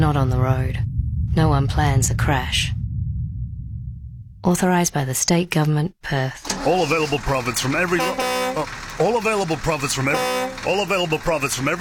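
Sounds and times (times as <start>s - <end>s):
speech: 0.0s - 2.8s, 4.4s - 11.7s
car horn honking: 6.5s - 11.7s.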